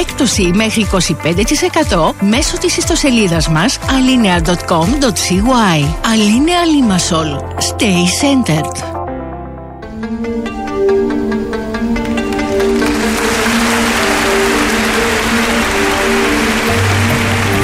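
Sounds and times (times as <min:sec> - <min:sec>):
speech: 0:00.0 - 0:09.0
sustained tonal musical backing: 0:09.2 - 0:17.6
applause: 0:12.7 - 0:17.6.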